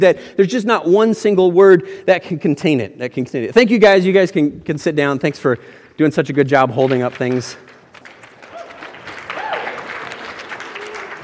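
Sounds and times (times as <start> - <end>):
speech: 0.0 - 7.7
parents clapping: 6.8 - 11.2.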